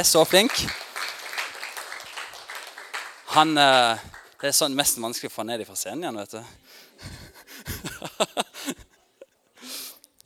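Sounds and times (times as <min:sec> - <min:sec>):
speech: 0:00.0 - 0:00.8, 0:03.4 - 0:07.2
applause: 0:00.0 - 0:04.5
laughter: 0:07.0 - 0:09.3.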